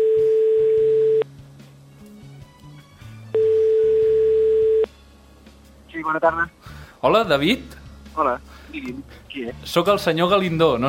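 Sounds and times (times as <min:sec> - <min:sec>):
telephone ringback tones as a radio host calls a listener: 0:00.0 - 0:01.2, 0:03.4 - 0:04.9
low shifting music bed: 0:00.0 - 0:10.8
speech: 0:06.1 - 0:10.8.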